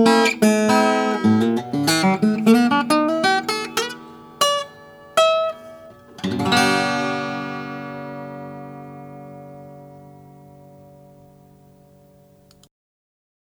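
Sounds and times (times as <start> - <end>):
black Gibson L 0 guitar: 0.0 - 12.7.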